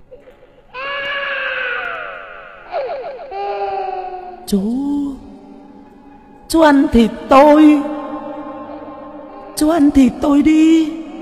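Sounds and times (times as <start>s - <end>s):
person crying: 2.7s - 4.5s
speech: 4.5s - 5.0s, 6.5s - 7.9s, 9.6s - 11.0s.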